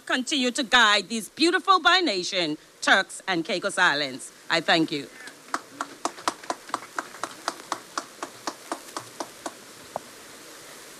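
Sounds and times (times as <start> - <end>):
speech: 0.1 - 5.2
audience applause after a speech: 5.2 - 9.6.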